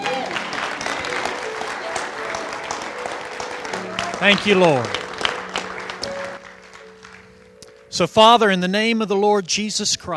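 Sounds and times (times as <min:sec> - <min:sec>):
audience applause: 0:00.0 - 0:07.9
speech: 0:04.2 - 0:05.0, 0:08.0 - 0:10.1.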